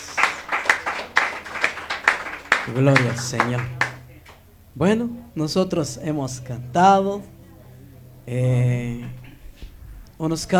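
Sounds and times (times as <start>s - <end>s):
group clapping in a steady rhythm: 0.0s - 4.4s
laughter: 0.0s - 9.6s
speech: 2.6s - 3.8s, 4.8s - 7.4s, 8.2s - 9.2s, 10.2s - 10.5s.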